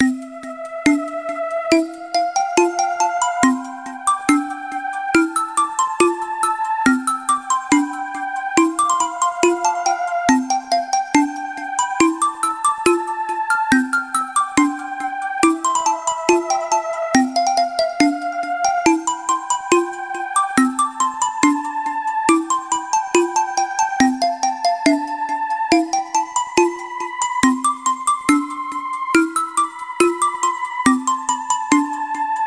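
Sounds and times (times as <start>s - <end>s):
background music: 0.0s - 32.4s.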